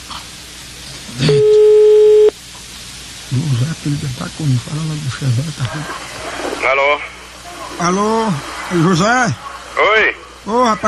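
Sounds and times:
telephone call tone on a phone line: 1.2 - 2.3
speech: 3.3 - 7.1, 7.7 - 10.8.

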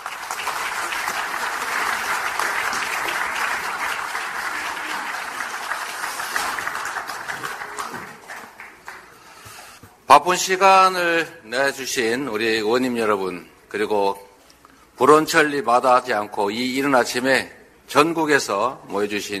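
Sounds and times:
audience applause: 0.0 - 9.3
speech: 10.2 - 14.2, 15.0 - 19.3.

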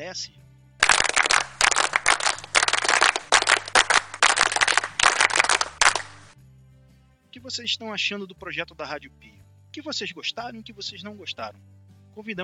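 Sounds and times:
speech: 0.0 - 0.4, 7.3 - 12.4
scout-style clapping sound effect: 0.8 - 6.4.

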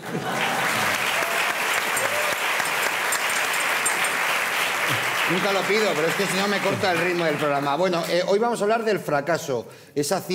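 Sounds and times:
studio audience applause: 0.0 - 8.1
speech: 5.3 - 10.3.

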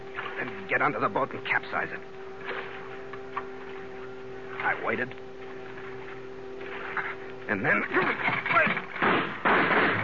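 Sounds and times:
speech: 0.4 - 2.6, 4.6 - 5.2, 7.0 - 8.9
gunshots: 8.6 - 10.0.

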